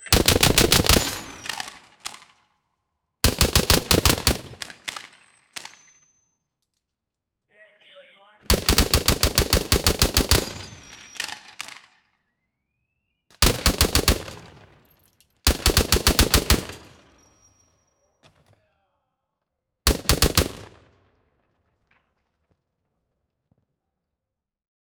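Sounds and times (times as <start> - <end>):
realistic machine gun fire: 0.0 - 2.2, 3.2 - 5.8, 8.5 - 11.8, 13.4 - 14.5, 15.5 - 17.0, 19.9 - 20.8.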